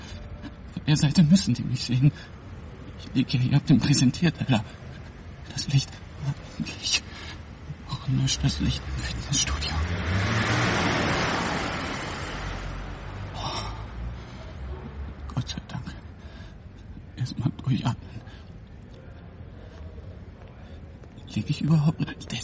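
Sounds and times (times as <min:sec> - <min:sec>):
low hum: 0:00.0 - 0:09.9, 0:12.6 - 0:22.4
speech: 0:00.9 - 0:02.4, 0:03.1 - 0:04.8, 0:05.6 - 0:07.4, 0:08.1 - 0:10.3
car driving past: 0:08.7 - 0:15.3.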